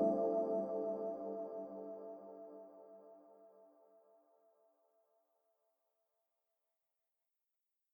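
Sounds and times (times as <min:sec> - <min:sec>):
sampled bell pad: 0:00.0 - 0:02.6.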